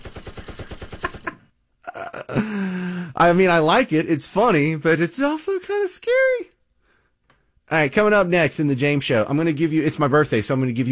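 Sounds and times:
AR-15 rifle gunfire sound effect: 0.0s - 1.3s
speech: 2.4s - 6.4s, 7.7s - 10.9s.

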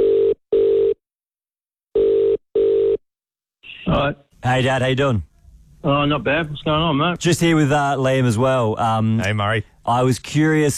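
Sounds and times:
phone call ringing before answer: 0.0s - 1.0s, 2.0s - 3.0s
speech: 3.9s - 10.7s.

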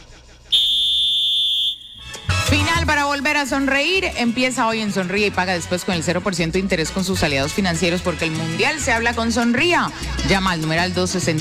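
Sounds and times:
whistle blast: 0.5s - 2.4s
speech: 3.2s - 11.3s.

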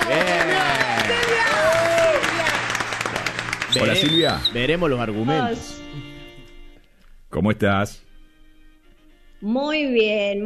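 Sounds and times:
studio audience applause: 0.0s - 5.2s
speech: 3.8s - 6.1s, 7.3s - 8.0s, 9.4s - 10.4s.

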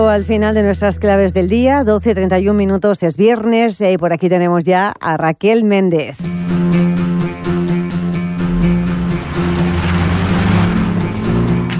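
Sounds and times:
speech: 0.0s - 6.8s
radio segment theme tune: 6.2s - 11.7s.

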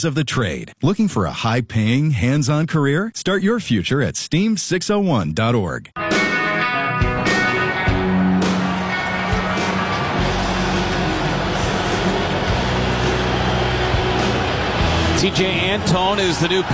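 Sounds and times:
speech: 0.0s - 6.2s, 15.2s - 16.7s
crowd roaring after a goal: 7.3s - 16.7s.

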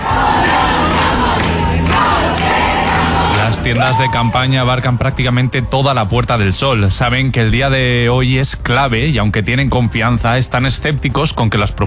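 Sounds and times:
large crowd of protesters camping, voices and shouts: 0.0s - 7.2s
speech: 3.7s - 11.8s.

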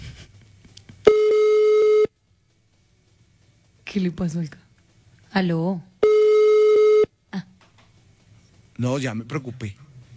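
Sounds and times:
electronic telephone tone of an unanswered call: 1.1s - 2.1s, 6.0s - 7.1s
speech: 4.0s - 4.6s, 5.3s - 5.9s, 8.8s - 9.8s.

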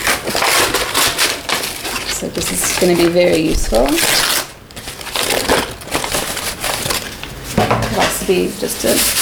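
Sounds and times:
old paper being ripped up: 0.0s - 7.6s
speech: 2.2s - 4.4s, 8.3s - 9.1s.

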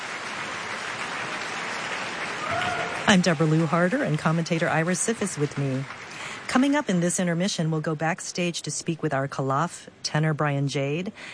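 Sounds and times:
opera audience applauding principals' bows: 0.0s - 7.0s
speech: 3.1s - 11.3s.

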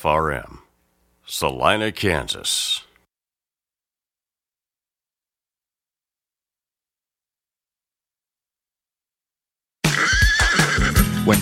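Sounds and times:
speech: 0.0s - 0.6s, 1.3s - 2.9s
horse neighing: 9.9s - 11.1s.

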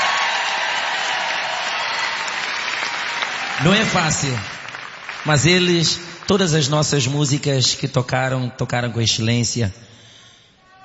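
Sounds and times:
audience applause for the band: 0.0s - 7.2s
speech: 3.6s - 4.6s, 5.2s - 10.0s.

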